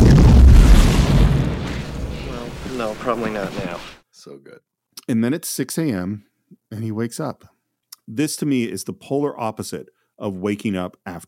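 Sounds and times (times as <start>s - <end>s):
pickup truck crash explosion: 0.0s - 4.0s
speech: 2.9s - 7.5s, 8.1s - 11.2s.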